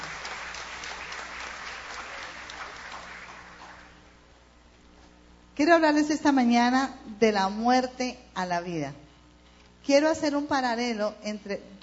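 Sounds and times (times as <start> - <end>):
audience applause: 0.0 - 4.0
speech: 5.6 - 9.0, 9.8 - 11.8.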